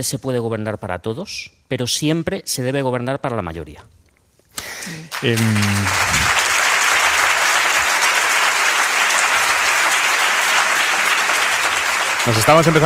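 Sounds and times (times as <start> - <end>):
speech: 0.0 - 4.0, 4.6 - 6.2, 12.2 - 12.8
studio audience applause: 5.0 - 12.8.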